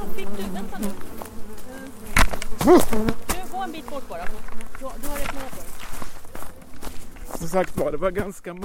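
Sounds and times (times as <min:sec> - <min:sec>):
honeybees buzzing at a hive frame: 0:00.0 - 0:08.6
speech: 0:00.2 - 0:01.2, 0:02.6 - 0:05.7, 0:07.4 - 0:08.6
sharp knock or rustle: 0:02.1 - 0:03.4.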